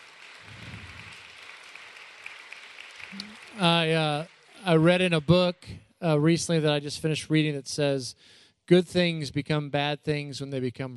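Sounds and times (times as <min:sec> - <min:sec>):
round of applause: 0:00.0 - 0:05.8
speech: 0:03.1 - 0:10.9.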